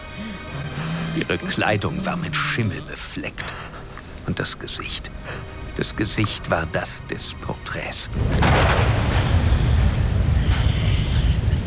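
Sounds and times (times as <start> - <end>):
speech: 1.2 - 9.0
thunder clap and rumble: 8.1 - 11.6.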